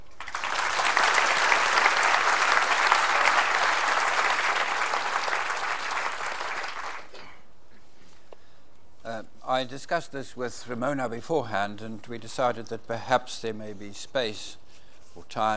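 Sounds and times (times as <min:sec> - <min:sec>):
audience applause welcoming author André Brink: 0:00.0 - 0:07.1
speech: 0:09.6 - 0:14.6, 0:15.2 - 0:15.5.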